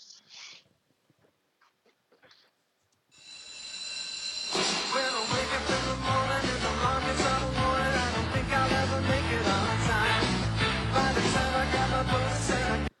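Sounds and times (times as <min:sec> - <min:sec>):
upbeat TV sitcom theme song with full band: 0:04.4 - 0:12.9.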